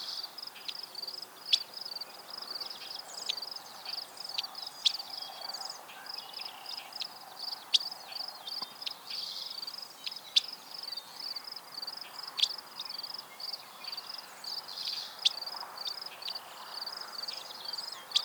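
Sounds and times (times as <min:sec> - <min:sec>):
Dickcissel Spiza americana: 0:02.6 - 0:18.2.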